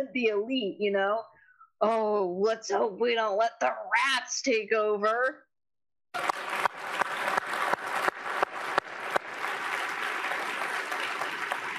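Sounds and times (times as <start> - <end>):
speech: 0.0 - 5.5, 6.1 - 6.3
audience applause: 6.2 - 11.7.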